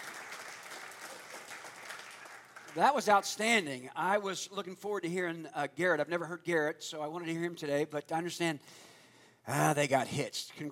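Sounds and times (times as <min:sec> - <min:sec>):
audience applause: 0:00.0 - 0:03.2
speech: 0:02.8 - 0:08.9, 0:09.5 - 0:10.6.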